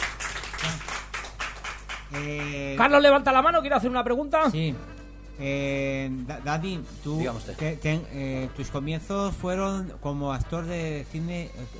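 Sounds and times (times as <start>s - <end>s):
audience applause: 0.0s - 2.8s
speech: 2.1s - 11.7s.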